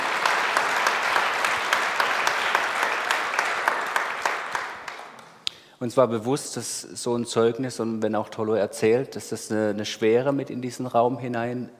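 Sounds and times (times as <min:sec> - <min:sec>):
audience applause: 0:00.0 - 0:05.3
speech: 0:05.8 - 0:11.7.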